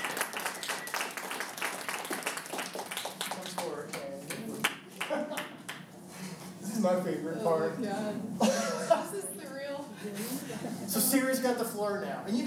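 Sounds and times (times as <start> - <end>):
audience round of applause: 0.0 - 5.9
laughter: 4.9 - 5.7, 7.9 - 9.4, 10.0 - 11.1
speech: 6.8 - 12.4.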